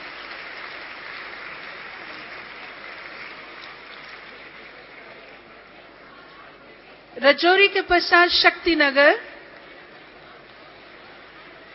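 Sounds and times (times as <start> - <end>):
audience applause: 0.0 - 6.0, 9.6 - 11.7
speech: 7.2 - 9.3.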